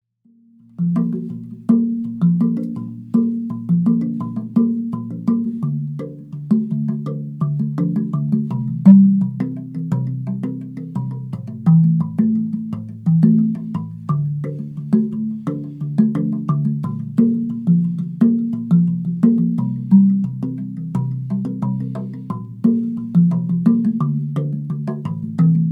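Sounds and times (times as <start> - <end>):
tongue drum: 0.6 - 25.6.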